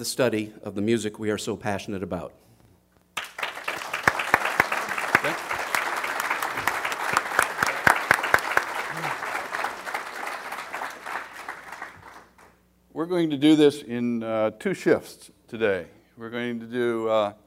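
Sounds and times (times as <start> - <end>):
speech: 0.0 - 2.5, 13.1 - 17.4
audience applause: 3.2 - 12.5.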